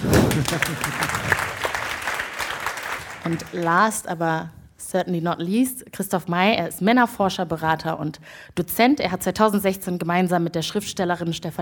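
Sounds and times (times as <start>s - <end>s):
audience applause: 0.0s - 3.8s
speech: 0.1s - 1.5s, 3.2s - 11.5s.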